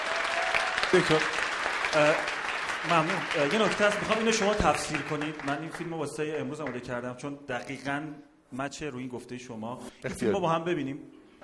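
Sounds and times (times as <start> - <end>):
audience clapping in someone's honour: 0.0 - 7.0
speech: 0.9 - 1.4, 2.0 - 11.2.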